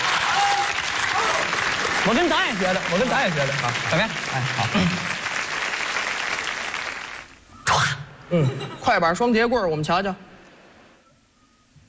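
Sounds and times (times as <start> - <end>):
audience applause: 0.0 - 7.4
speech: 2.0 - 5.2, 8.3 - 10.2.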